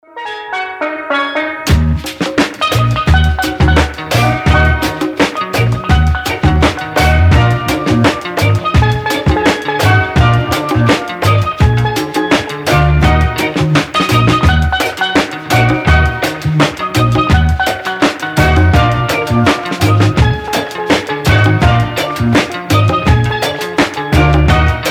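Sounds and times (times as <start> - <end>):
instrumental steel band playing: 0.2 - 24.9.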